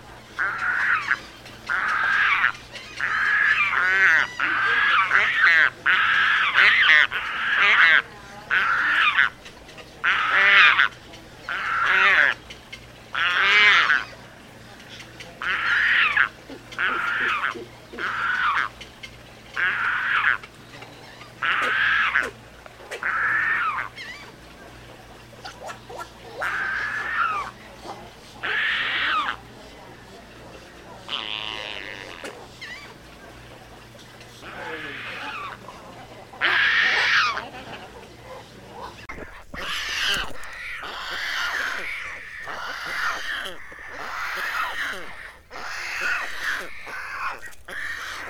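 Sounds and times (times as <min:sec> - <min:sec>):
pelican calling: 0:00.4 - 0:20.6, 0:21.2 - 0:24.4, 0:25.4 - 0:27.6, 0:28.3 - 0:29.4, 0:34.4 - 0:35.8, 0:36.4 - 0:37.5, 0:39.0 - 0:48.2.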